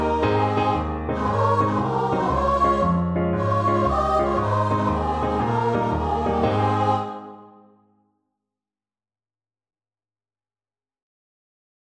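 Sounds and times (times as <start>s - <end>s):
choir singing: 0.0s - 7.9s.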